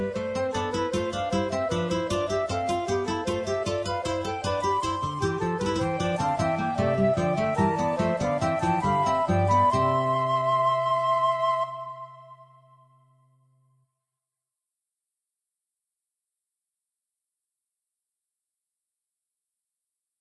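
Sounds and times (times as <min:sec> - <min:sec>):
guitars: 0:00.0 - 0:12.1
flutes: 0:00.0 - 0:13.2.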